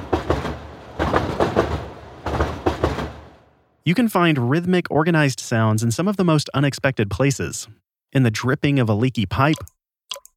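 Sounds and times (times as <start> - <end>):
rhythmic hum of the Uptown C subway train: 0.0 - 3.6
speech: 3.9 - 9.8.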